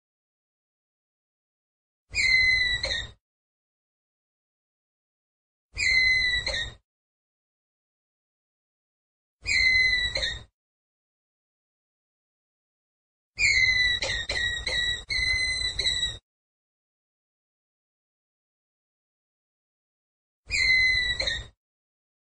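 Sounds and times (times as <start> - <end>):
ground squirrel whistled call: 2.1 - 3.2, 5.8 - 6.8, 9.4 - 10.5, 13.4 - 16.2, 20.5 - 21.6.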